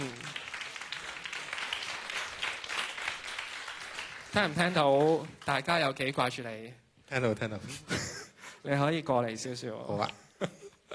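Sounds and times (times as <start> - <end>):
audience applause welcoming a final-year music student on stage: 0.0 - 5.7
speech: 4.4 - 8.0, 8.6 - 10.6.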